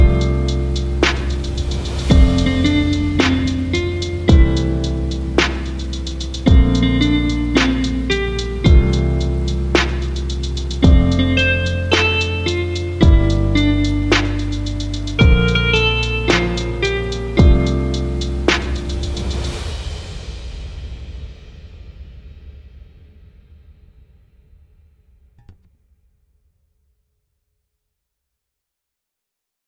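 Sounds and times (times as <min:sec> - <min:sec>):
background music: 0:00.0 - 0:19.6.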